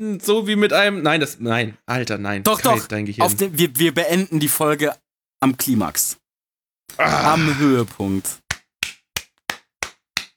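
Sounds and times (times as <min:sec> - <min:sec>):
speech: 0:00.0 - 0:06.2, 0:06.9 - 0:08.4
hand clapping: 0:08.4 - 0:10.3.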